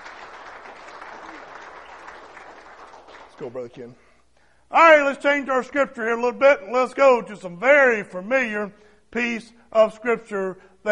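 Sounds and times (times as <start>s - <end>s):
congregation applauding in church: 0.0s - 4.0s
speech: 3.4s - 4.1s, 4.7s - 10.9s.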